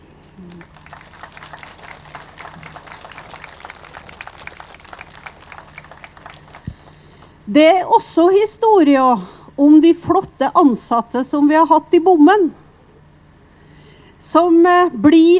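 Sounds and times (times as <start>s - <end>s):
audience applause: 0.4s - 7.4s
speech: 7.5s - 12.6s, 14.4s - 15.3s.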